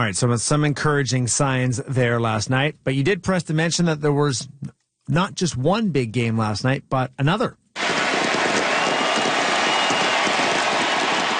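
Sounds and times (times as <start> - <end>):
speech: 0.0 - 7.6
Buenos Aires crowd roaring for Lionel Messi: 7.8 - 11.3.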